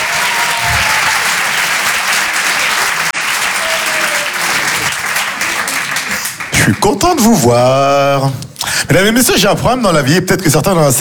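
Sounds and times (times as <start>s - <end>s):
audience applause in a comedy club: 0.0s - 7.3s
speech: 6.8s - 11.0s.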